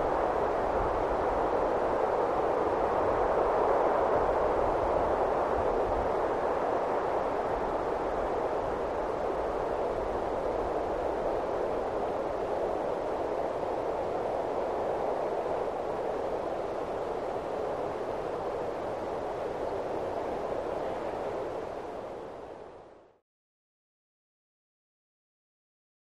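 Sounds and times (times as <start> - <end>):
medium cold wind gusts: 0.0 - 23.2.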